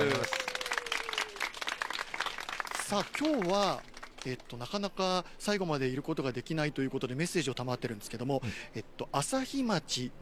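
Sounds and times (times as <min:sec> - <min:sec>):
audience applause at a Japanese community event: 0:00.0 - 0:04.7
speech: 0:02.9 - 0:10.2.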